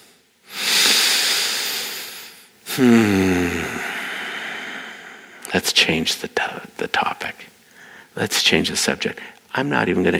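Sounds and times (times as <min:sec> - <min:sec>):
deep breathing: 0:00.0 - 0:05.5, 0:07.6 - 0:08.2
speech: 0:02.8 - 0:03.9, 0:05.5 - 0:07.6, 0:08.2 - 0:10.1.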